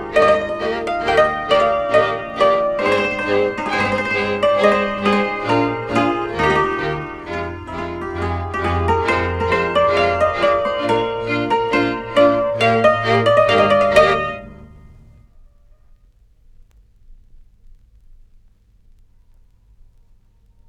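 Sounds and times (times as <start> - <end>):
Hungarian recruiting dance music: 0.0 - 15.2.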